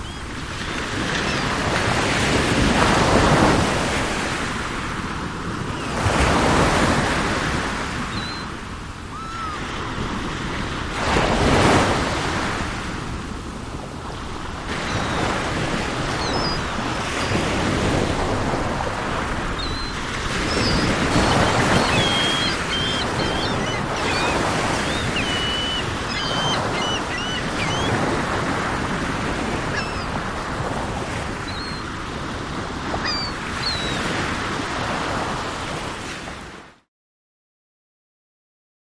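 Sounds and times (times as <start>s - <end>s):
seagulls calling: 0.0s - 1.8s, 8.1s - 8.5s, 9.1s - 9.9s, 14.7s - 18.0s, 19.5s - 30.4s, 31.1s - 32.0s, 32.8s - 34.2s
ocean waves: 0.0s - 36.8s.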